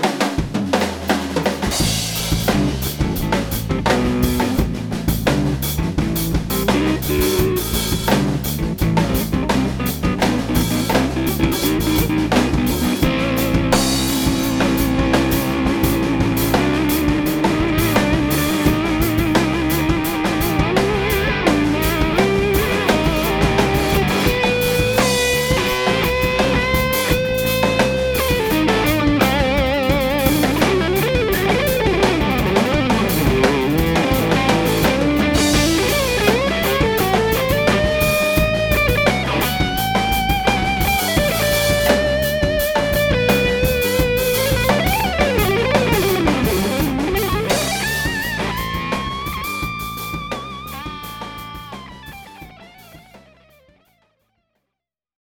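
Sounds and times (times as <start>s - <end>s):
groove music: 0.2s - 53.6s.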